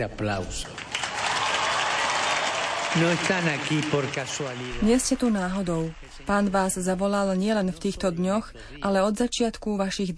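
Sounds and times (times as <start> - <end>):
speech: 0.0 - 0.8, 2.9 - 10.1
loud applause from a large crowd: 0.7 - 6.7.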